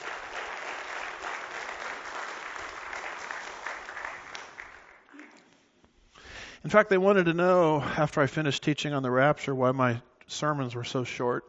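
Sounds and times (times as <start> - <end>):
audience applause: 0.0 - 5.4
speech: 6.6 - 11.4.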